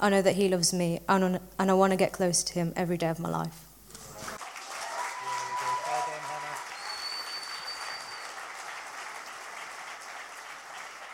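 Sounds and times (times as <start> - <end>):
speech: 0.0 - 3.7
audience applause: 4.1 - 11.1.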